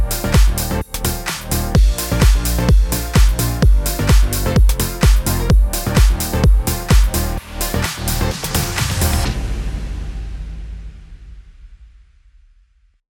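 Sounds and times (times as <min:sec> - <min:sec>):
house music in A sharp major at 128 BPM: 0:00.0 - 0:09.5.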